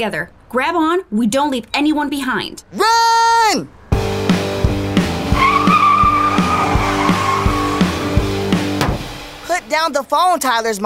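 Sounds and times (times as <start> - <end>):
speech: 0.0 - 3.8, 9.6 - 10.8
car tires screeching to a sudden stop: 3.7 - 9.7.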